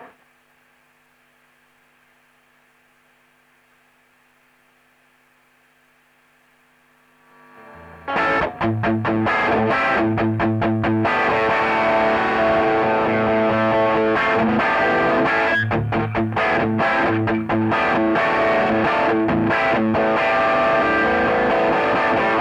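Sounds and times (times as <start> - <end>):
electric guitar: 7.3 - 22.3.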